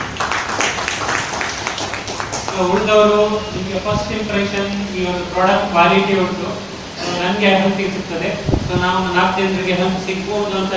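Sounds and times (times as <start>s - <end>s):
audience clapping at a DXN business meeting: 0.0s - 2.9s
speech: 2.6s - 10.7s.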